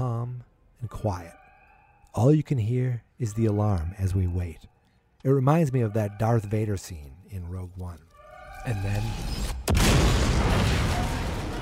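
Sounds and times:
speech: 0.8s - 1.4s, 2.1s - 11.2s
door blasted open: 9.1s - 11.6s
explosion boom: 9.4s - 11.6s.

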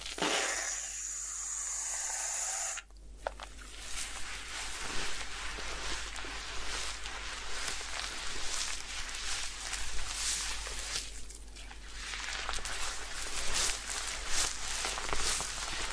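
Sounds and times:
fingers rustling through hair in a head spa session: 0.0s - 15.9s
bright spraying hiss: 0.2s - 2.8s.

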